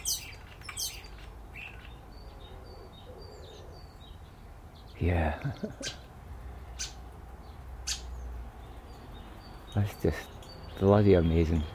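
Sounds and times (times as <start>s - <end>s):
bird calling: 0.0s - 4.0s, 5.5s - 6.1s, 6.7s - 7.0s, 7.8s - 8.2s
speech: 5.0s - 6.1s, 9.8s - 11.7s.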